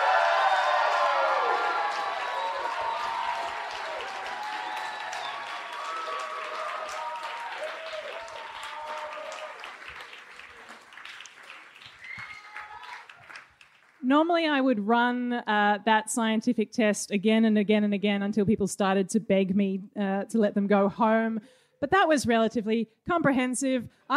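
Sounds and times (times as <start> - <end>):
audience clapping and cheering at a science comedy debate: 0.0 - 14.0
speech: 14.1 - 24.1.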